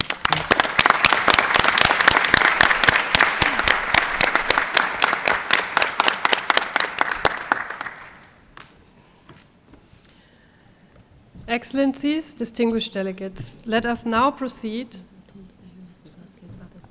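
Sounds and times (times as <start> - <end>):
audience applause: 0.0 - 8.4
speech: 11.6 - 15.1.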